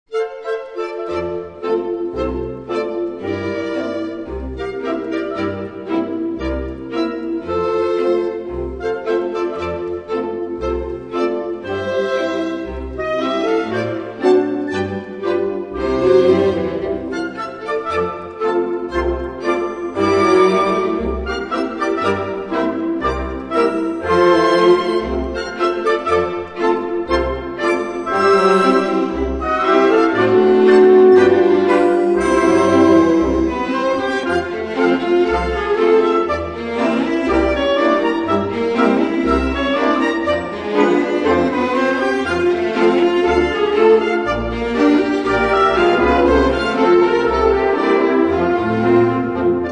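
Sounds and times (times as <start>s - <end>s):
gavotte: 0.1s - 49.7s.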